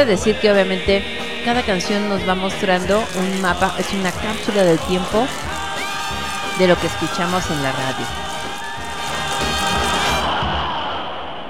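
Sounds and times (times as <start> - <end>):
speech: 0.0 - 5.6, 6.6 - 8.4
festive crowd roaring: 2.9 - 11.4
whistles blowing: 5.3 - 10.3.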